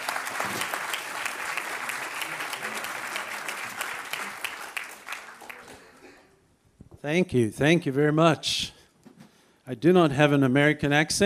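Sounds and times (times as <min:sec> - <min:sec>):
church congregation clapping to welcome a pastor: 0:00.0 - 0:06.3
speech: 0:07.0 - 0:08.8, 0:09.7 - 0:11.2.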